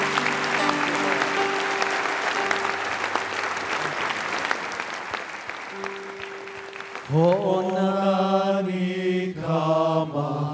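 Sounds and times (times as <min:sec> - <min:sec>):
audience applause: 0:00.0 - 0:08.2
speech: 0:07.1 - 0:10.4.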